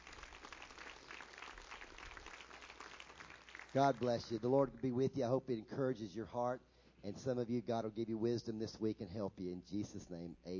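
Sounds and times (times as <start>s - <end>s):
audience applause: 0.0s - 4.3s
speech: 3.7s - 10.5s.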